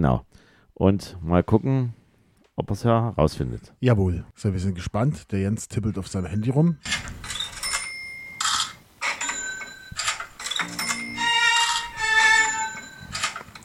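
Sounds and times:
speech: 0.0 - 2.0, 2.6 - 7.3
cash register ka-ching: 6.8 - 13.6.

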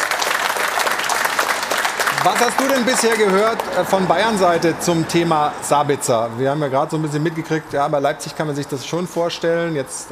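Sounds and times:
applause: 0.0 - 4.0
speech: 2.2 - 10.1.

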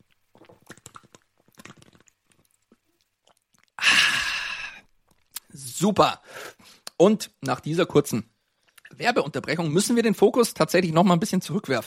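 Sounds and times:
gulping from a bottle: 0.0 - 3.8
breathy satisfied exhale: 3.8 - 4.9, 6.2 - 6.9
speech: 5.8 - 6.4, 7.0 - 8.3, 9.0 - 11.8.

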